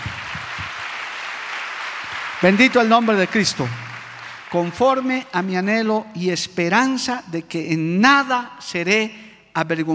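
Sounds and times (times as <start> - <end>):
audience applause: 0.0 - 5.4
speech: 2.4 - 3.8, 4.5 - 9.9.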